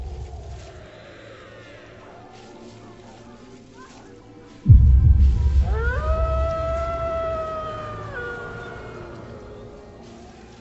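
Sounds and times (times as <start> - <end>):
vicious dogs howling: 5.6 - 10.5.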